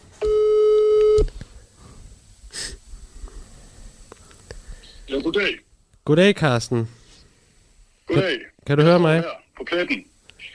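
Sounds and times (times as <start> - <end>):
telephone ringing tone of outgoing call: 0.2 - 1.2
speech: 5.2 - 7.0, 8.2 - 10.5.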